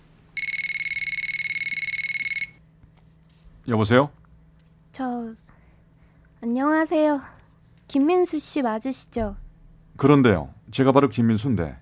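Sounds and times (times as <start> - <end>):
telephone ringing with electronic trilling: 0.4 - 2.6
speech: 3.7 - 4.2, 6.4 - 7.3, 7.9 - 9.4, 10.0 - 11.7.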